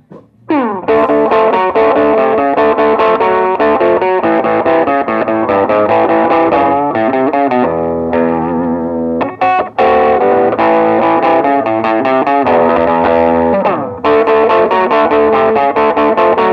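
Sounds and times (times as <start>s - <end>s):
clean tweed Gibson guitar amp miked with RCA 44A ribbon microphone: 0.0s - 16.5s.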